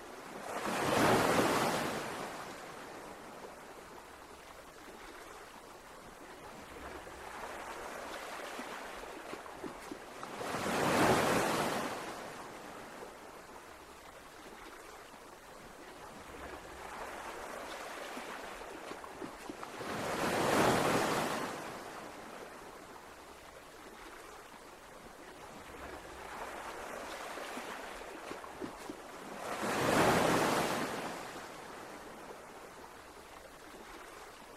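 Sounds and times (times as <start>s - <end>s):
ocean waves crashing: 0.0s - 2.9s, 7.1s - 12.8s, 16.6s - 22.4s, 26.0s - 32.0s.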